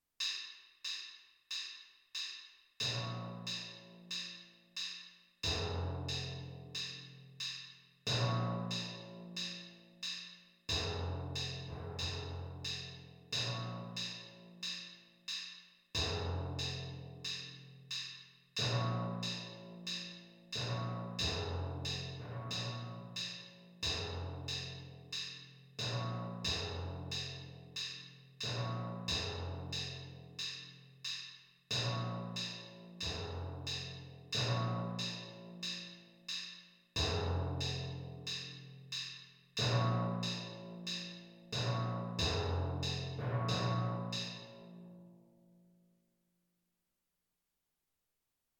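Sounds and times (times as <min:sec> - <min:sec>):
timpani: 0:02.8 - 0:14.9, 0:16.0 - 0:44.8.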